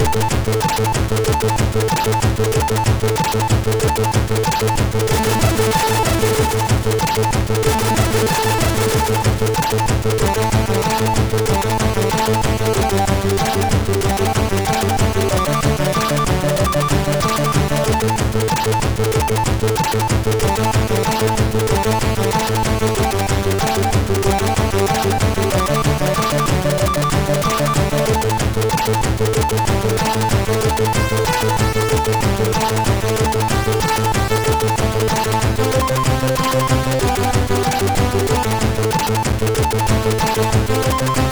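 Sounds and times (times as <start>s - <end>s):
chiptune music on MOS6581 SID chip: 0.0s - 41.3s.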